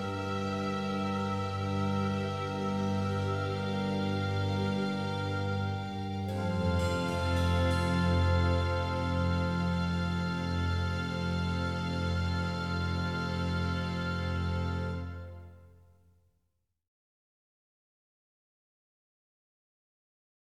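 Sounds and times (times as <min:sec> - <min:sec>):
organ concerto in B flat major: 0:00.0 - 0:15.6.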